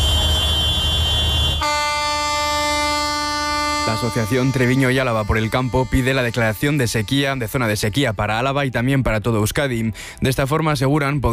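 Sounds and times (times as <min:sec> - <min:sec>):
loud buzzy tractor horn blast at a farmers' protest: 0:00.0 - 0:07.9
tractor engines rumbling at a farmers' protest outside a government building: 0:00.0 - 0:10.4
speech: 0:03.9 - 0:11.3.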